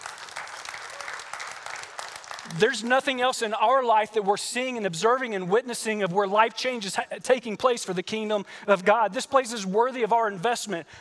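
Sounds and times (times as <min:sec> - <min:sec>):
audience applauding: 0:00.0 - 0:03.1
speech: 0:02.4 - 0:10.9.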